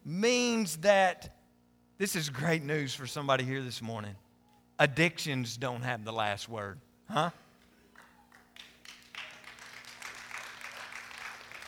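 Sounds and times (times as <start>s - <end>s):
speech: 0.1s - 1.4s, 2.0s - 4.2s, 4.8s - 7.4s
audience clapping politely: 7.6s - 11.6s.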